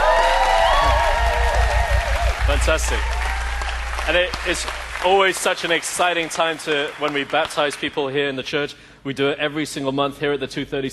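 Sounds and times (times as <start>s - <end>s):
crowd clapping: 0.0s - 8.2s
speech: 2.6s - 3.2s, 4.0s - 10.9s.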